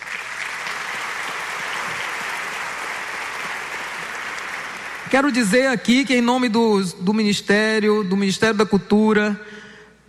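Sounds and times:
audience applause: 0.0 - 5.3
speech: 5.1 - 10.0.

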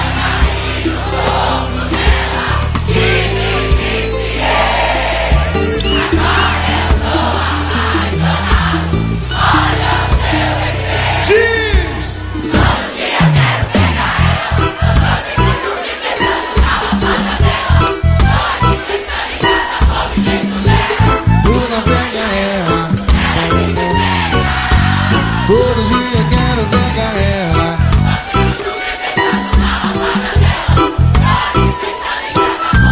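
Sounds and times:
big crowd roaring and cheering: 0.0 - 32.9
music with punchy rhythmic beat: 0.0 - 32.9.

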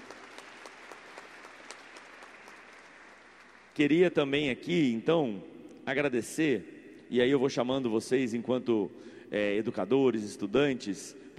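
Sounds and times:
audience applause: 0.0 - 3.8
speech: 3.8 - 11.3.

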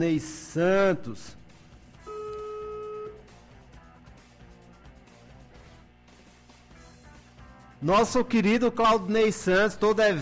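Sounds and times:
speech: 0.0 - 1.4, 7.8 - 10.1
two-tone telephone beep: 2.0 - 3.3.

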